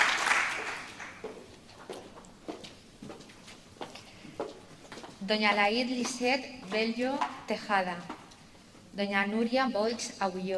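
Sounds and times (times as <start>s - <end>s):
audience applause: 0.0s - 1.3s
speech: 5.3s - 8.1s, 9.0s - 10.5s.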